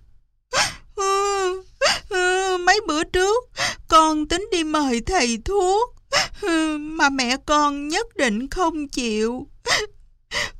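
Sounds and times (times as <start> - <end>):
young girl bursting into sobbing: 0.5 - 2.8, 6.1 - 7.0, 9.6 - 10.5
speech: 2.8 - 9.9.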